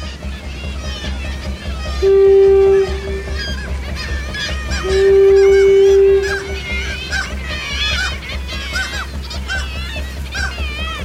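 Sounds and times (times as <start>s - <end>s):
passing ship's horn blast: 2.0s - 7.4s.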